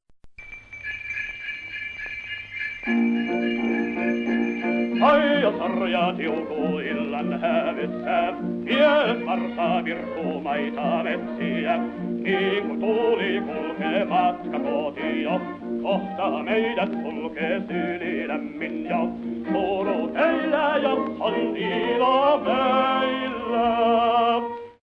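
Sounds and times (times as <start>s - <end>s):
polska folk music: 2.8s - 24.8s.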